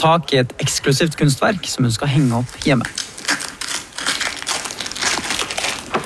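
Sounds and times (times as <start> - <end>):
speech: 0.0 - 3.0
paper crinkling as a large cylindrical parcel holding an art print is unwrapped: 2.0 - 6.0.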